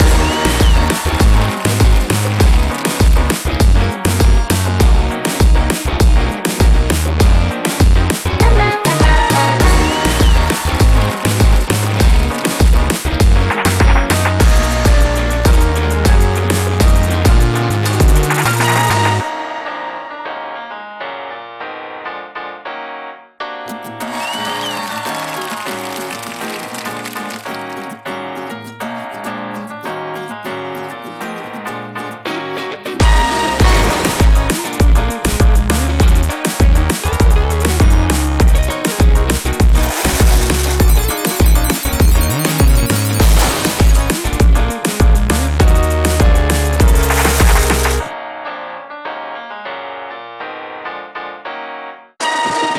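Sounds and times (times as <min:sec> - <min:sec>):
background music: 0:00.0 - 0:20.6, 0:31.3 - 0:48.1, 0:52.2 - 0:52.7.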